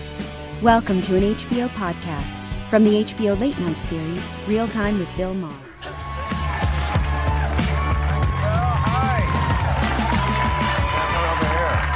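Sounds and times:
speech: 0.6s - 5.7s
studio audience cheering and applauding: 5.8s - 11.9s.

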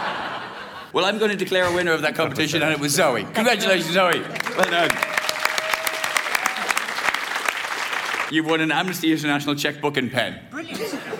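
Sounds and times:
laughter: 0.0s - 1.0s, 10.7s - 11.1s
speech: 0.9s - 5.2s, 8.3s - 11.0s
audience clapping: 4.0s - 9.1s.

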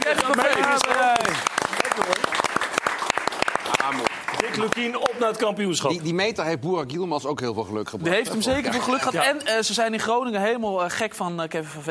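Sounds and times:
small group clapping: 0.0s - 5.7s
speech: 4.7s - 11.9s.

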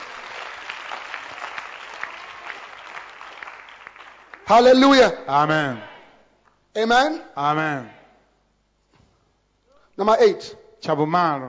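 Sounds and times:
audience clapping hands: 0.0s - 5.0s
speech: 4.5s - 5.9s, 6.8s - 8.0s, 10.0s - 11.4s.

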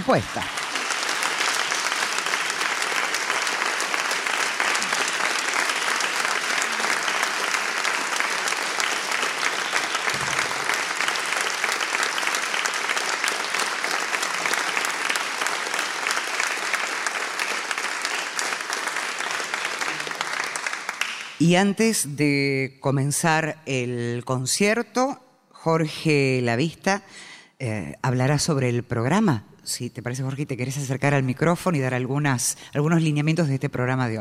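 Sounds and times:
concert audience applause: 0.0s - 21.4s
speech: 0.1s - 0.6s, 21.4s - 34.1s.

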